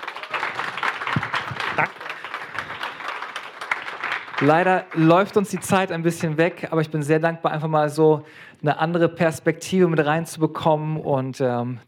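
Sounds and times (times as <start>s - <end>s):
audience applause: 0.0s - 6.0s
speech: 4.4s - 11.8s.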